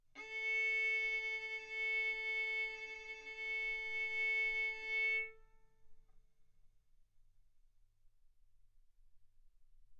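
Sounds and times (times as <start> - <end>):
violin bowed mezzo-forte on the A string, A4 and B4: 0.2 - 5.4.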